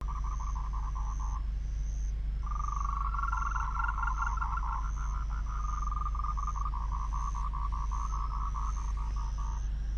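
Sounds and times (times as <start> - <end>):
Moltrecht's tree frog calling in pulsing trains: 0.0 - 9.9
faint high insect trill: 0.0 - 9.9
low steady hum: 0.0 - 9.9.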